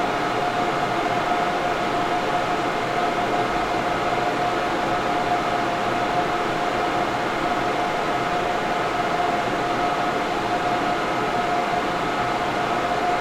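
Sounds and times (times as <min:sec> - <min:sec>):
distant server room hum: 0:00.1 - 0:13.1.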